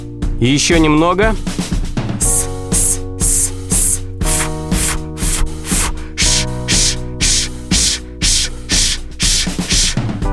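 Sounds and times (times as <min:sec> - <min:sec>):
speech: 0:00.4 - 0:01.6
person hissing s, f and sh exhalations in a breathing exercise: 0:02.2 - 0:10.2.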